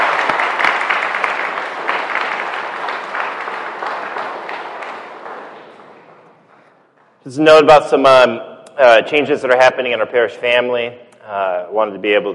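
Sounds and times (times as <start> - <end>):
audience applause: 0.0 - 6.8
speech: 7.3 - 12.3.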